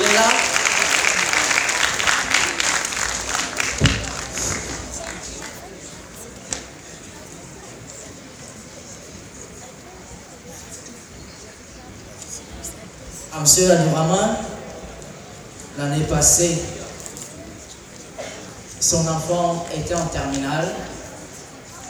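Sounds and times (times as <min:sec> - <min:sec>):
audience applause: 0:00.0 - 0:06.7
murmuring voices: 0:00.0 - 0:21.8
speech: 0:13.4 - 0:14.5, 0:15.8 - 0:16.8, 0:18.9 - 0:21.0.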